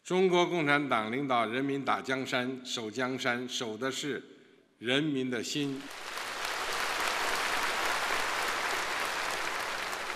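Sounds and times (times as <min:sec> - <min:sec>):
speech: 0:00.1 - 0:06.1
applause from the audience: 0:05.8 - 0:10.1.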